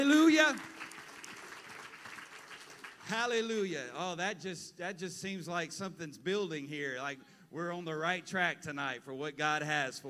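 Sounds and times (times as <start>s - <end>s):
crowd clapping: 0.0s - 3.4s
speech: 0.5s - 0.7s, 3.1s - 10.0s.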